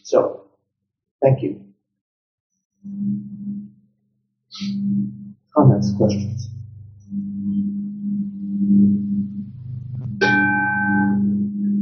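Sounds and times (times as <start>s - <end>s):
speech: 0.0s - 0.4s, 1.2s - 1.7s, 2.8s - 3.8s, 4.6s - 7.8s
low steady hum: 2.9s - 3.7s, 4.5s - 11.8s.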